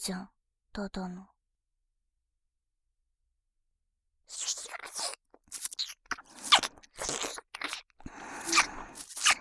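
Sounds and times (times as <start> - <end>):
ear licking sounds: 4.3 - 9.3.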